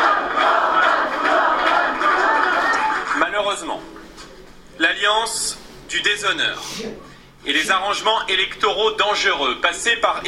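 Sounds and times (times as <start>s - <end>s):
party activists cheering their president on election night: 0.0s - 3.3s
speech: 5.2s - 10.2s.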